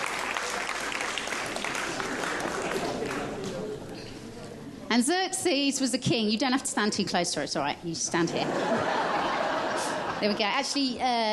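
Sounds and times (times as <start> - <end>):
audience clapping: 0.0 - 3.8
speech: 5.0 - 9.0, 10.2 - 11.3
laughter: 8.2 - 10.7.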